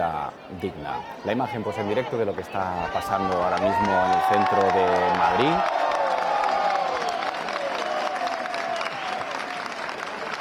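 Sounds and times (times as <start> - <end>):
speech: 0.0 - 5.8
large crowd applauding outdoors at a street protest camp: 2.8 - 10.3
cheers and whistles: 3.5 - 10.3.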